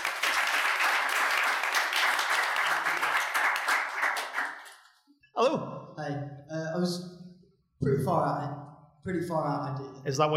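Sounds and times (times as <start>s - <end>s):
audience applause: 0.0s - 4.9s
speech: 5.4s - 7.1s, 7.9s - 10.3s.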